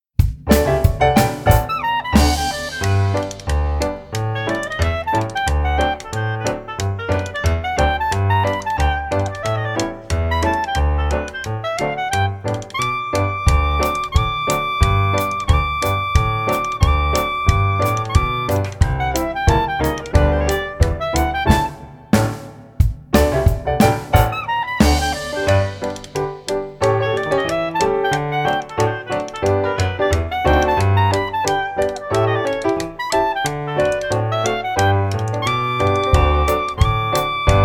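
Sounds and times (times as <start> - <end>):
instrumental music: 0.0 - 37.6.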